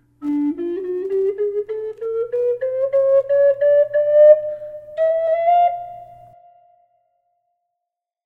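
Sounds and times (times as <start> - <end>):
flute: 0.0 - 7.4
humpback whale song with reverb in low D: 3.6 - 7.6.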